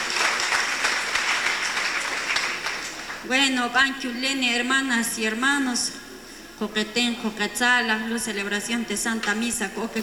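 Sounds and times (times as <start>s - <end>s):
applause: 0.0s - 3.3s
speech: 3.3s - 6.0s, 6.6s - 10.0s.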